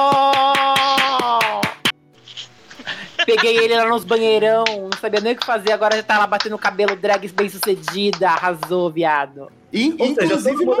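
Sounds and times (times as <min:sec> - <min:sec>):
audience clapping: 0:00.0 - 0:02.0, 0:03.5 - 0:08.9
laughter: 0:02.3 - 0:08.2
speech: 0:03.3 - 0:10.7.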